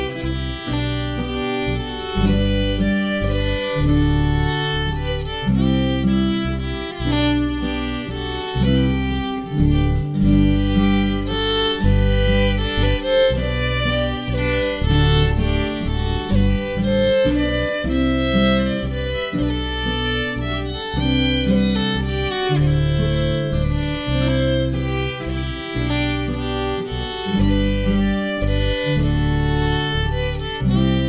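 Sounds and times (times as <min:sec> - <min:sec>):
guitar playing tune harmony: 0:00.0 - 0:31.0.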